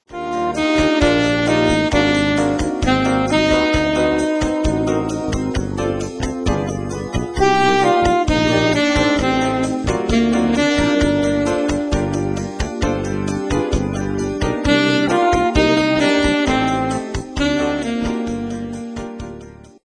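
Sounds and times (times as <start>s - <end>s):
samba music: 0.1s - 19.0s.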